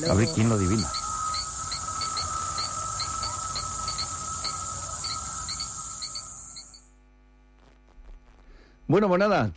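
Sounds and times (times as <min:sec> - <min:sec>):
speech: 0:00.0 - 0:01.0, 0:08.9 - 0:09.5
cicada buzzing: 0:00.0 - 0:06.9
crickets chirping: 0:00.0 - 0:07.0.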